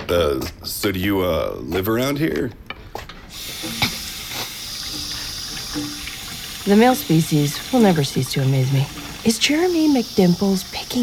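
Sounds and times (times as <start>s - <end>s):
speech: 0.1s - 2.6s, 5.8s - 6.0s, 6.6s - 11.0s
water running from a sink tap: 3.3s - 11.0s.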